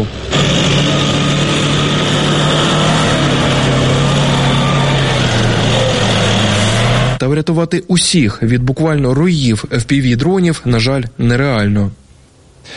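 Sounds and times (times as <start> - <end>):
military vehicle driving along road: 0.0 - 7.2
speech: 7.3 - 12.0.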